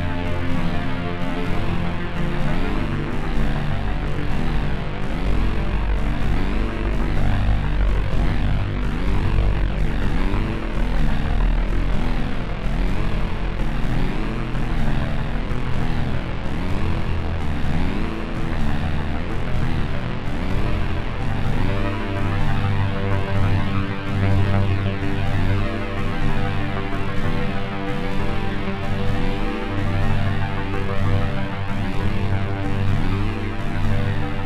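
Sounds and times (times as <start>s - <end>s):
metallic buzz from machines tweaked in real time: 0.0s - 34.4s.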